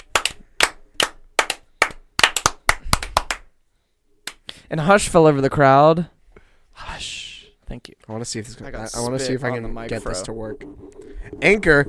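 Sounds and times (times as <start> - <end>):
people clapping: 0.0 - 3.5
speech: 4.7 - 6.2, 8.1 - 11.8.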